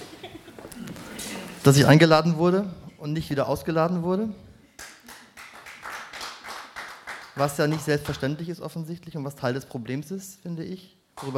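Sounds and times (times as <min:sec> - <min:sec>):
speech: 0:01.6 - 0:04.4, 0:07.4 - 0:11.3
audience clapping: 0:04.8 - 0:08.3, 0:11.2 - 0:11.3.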